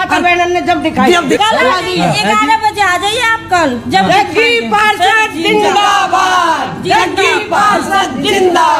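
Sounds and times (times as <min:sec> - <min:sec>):
speech: 0:00.1 - 0:08.7
women chanting political slogans for a ward councillor candidate: 0:03.6 - 0:08.7.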